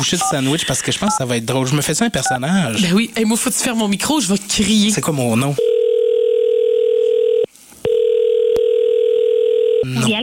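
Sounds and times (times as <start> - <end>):
speech: 0.0 - 5.8
telephone dial tone before a call: 5.6 - 9.8.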